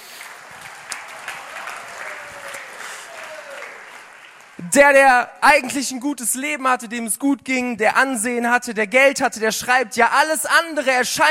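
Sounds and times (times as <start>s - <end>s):
crowd applause: 0.0s - 4.6s
speech: 4.6s - 11.2s.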